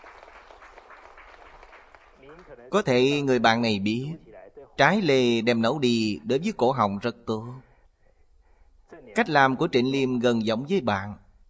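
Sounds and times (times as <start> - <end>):
audience applause: 0.0 - 2.8
speech: 2.4 - 4.2, 4.8 - 7.7, 9.2 - 11.2.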